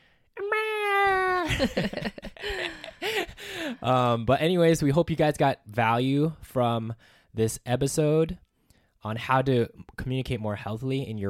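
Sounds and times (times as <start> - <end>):
baby crying or yelling: 0.4 - 1.6
laughter: 1.4 - 3.8
speech: 1.5 - 3.0, 3.7 - 8.4, 9.0 - 11.2.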